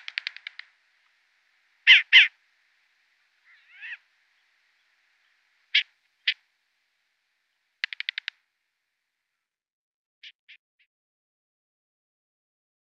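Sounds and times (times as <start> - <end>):
short-eared owl giving rasping barks: 0.0 - 6.5, 7.8 - 8.3.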